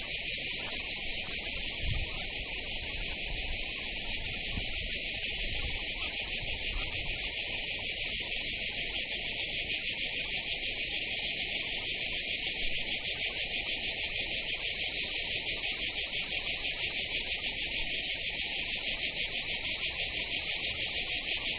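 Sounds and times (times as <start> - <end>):
crickets chirping: 0.0 - 21.5.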